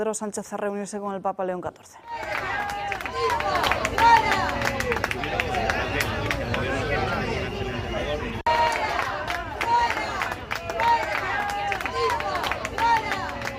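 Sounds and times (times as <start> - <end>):
speech: 0.0 - 6.2
crowd shouting: 2.0 - 13.5.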